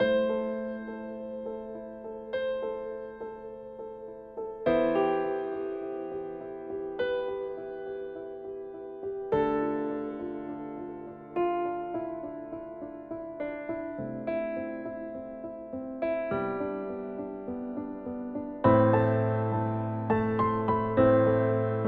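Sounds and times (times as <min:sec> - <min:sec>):
slow orchestral piano piece: 0:00.0 - 0:21.8.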